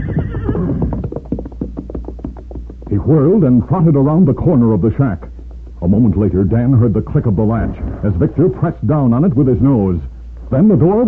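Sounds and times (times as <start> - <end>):
horse whinnying: 0.0 - 1.1, 7.4 - 8.4
speech: 3.0 - 11.0.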